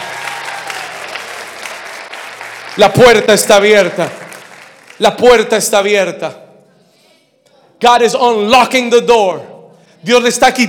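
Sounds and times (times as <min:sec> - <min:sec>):
audience applauding: 0:00.0 - 0:05.5
speech: 0:02.8 - 0:04.2, 0:05.0 - 0:06.4, 0:07.8 - 0:10.6.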